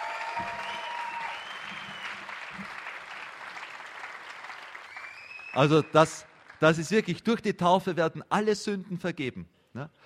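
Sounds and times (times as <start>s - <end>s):
audience applauding: 0.0s - 7.1s
speech: 5.6s - 10.0s.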